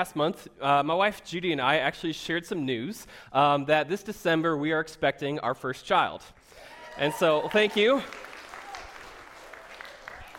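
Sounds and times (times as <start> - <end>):
speech: 0.0 - 8.2
audience applause: 6.6 - 10.3.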